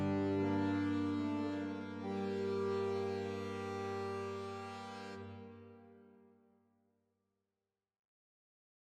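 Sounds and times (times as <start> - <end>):
harmoniums playing an allegro in G minor: 0.0 - 6.1.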